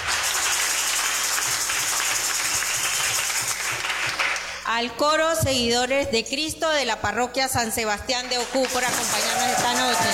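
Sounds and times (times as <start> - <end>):
audience applause: 0.0 - 4.5, 8.6 - 10.1
speech: 4.7 - 10.1.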